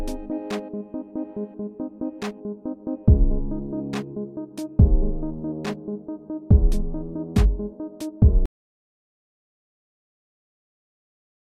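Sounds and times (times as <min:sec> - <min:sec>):
opening cutscene music: 0:00.0 - 0:08.5.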